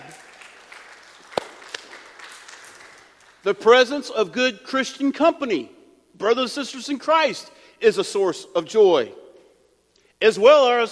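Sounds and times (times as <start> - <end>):
audience applause: 0.0 - 3.4
speech: 3.4 - 9.2, 10.2 - 10.9.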